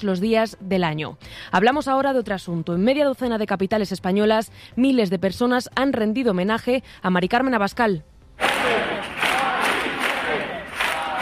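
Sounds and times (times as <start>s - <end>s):
speech: 0.0s - 8.8s
crowd chanting slogans at a protest march: 8.4s - 11.2s.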